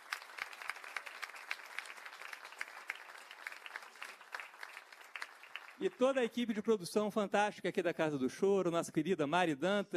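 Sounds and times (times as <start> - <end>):
audience applause: 0.0 - 6.3
speech: 5.8 - 9.9.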